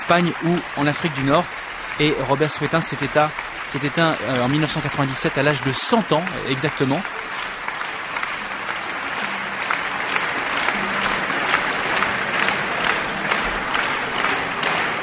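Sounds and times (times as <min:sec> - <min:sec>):
concert audience clapping at the Théâtre des Champs-Élysées in Paris: 0:00.0 - 0:15.0
speech: 0:00.1 - 0:07.5.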